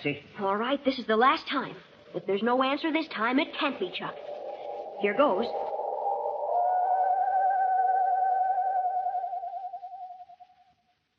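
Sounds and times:
speech: 0.0 - 4.3, 5.0 - 5.7
human voice imitating a mournful owl screech: 3.1 - 10.2.

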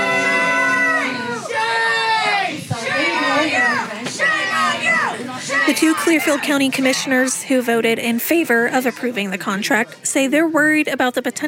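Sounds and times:
angry crowd shouting and jeering at a meeting: 0.0 - 7.4
speech: 5.7 - 11.4.

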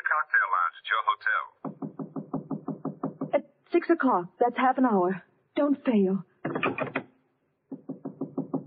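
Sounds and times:
speech: 0.1 - 1.7, 3.3 - 6.9
knocking at a door in a radio drama: 1.6 - 3.4, 7.7 - 8.6.

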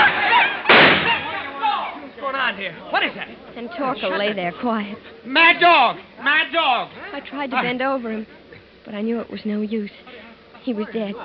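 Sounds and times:
revolver gunshot: 0.7 - 1.3
speech: 2.5 - 11.2.

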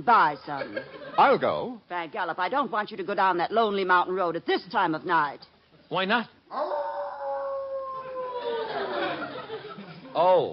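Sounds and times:
speech: 0.0 - 6.9, 10.2 - 10.5
hissy noisy background: 0.0 - 10.5
wolf howling: 6.5 - 8.8
laughter: 8.2 - 10.2.

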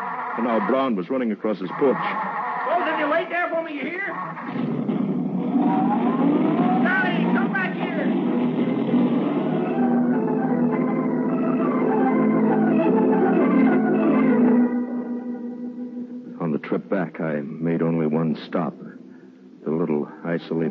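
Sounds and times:
laughter: 0.0 - 1.0, 1.6 - 4.5
speech: 0.4 - 4.8, 5.5 - 7.4, 16.6 - 18.9, 19.6 - 20.7
car engine droning while driving: 4.2 - 15.1.

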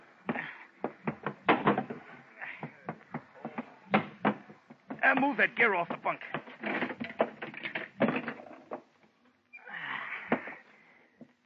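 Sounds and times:
wooden knocks and clunks of a boat cabin hatch being opened: 0.2 - 9.2
speech: 5.1 - 6.4.

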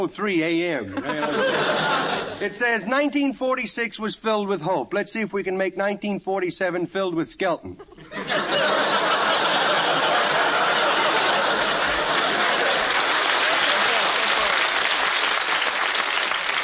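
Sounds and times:
speech: 0.0 - 9.0
studio audience laughter: 0.8 - 2.9, 7.8 - 15.3
studio audience applause: 8.6 - 16.6.

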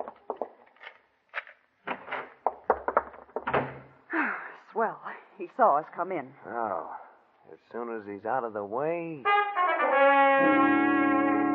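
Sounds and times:
door being opened: 1.8 - 3.9
speech: 4.8 - 11.2.

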